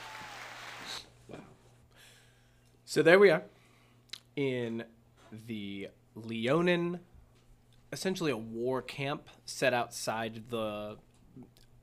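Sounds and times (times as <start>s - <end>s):
crowd cheering: 0.0s - 1.1s
speech: 2.9s - 3.6s, 4.4s - 7.1s, 7.9s - 11.6s.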